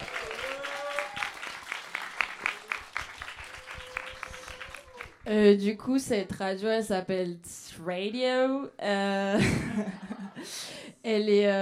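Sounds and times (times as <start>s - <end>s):
audience applause: 0.0s - 5.3s
speech: 5.3s - 11.6s.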